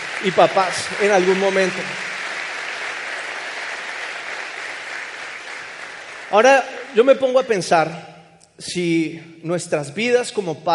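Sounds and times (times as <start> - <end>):
audience applause: 0.0 - 7.1
speech: 0.2 - 2.0, 6.3 - 10.7.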